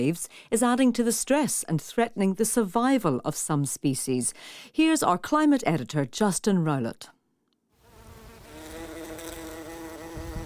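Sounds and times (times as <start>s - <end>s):
speech: 0.0s - 7.2s
bumblebee buzzing: 7.8s - 10.4s.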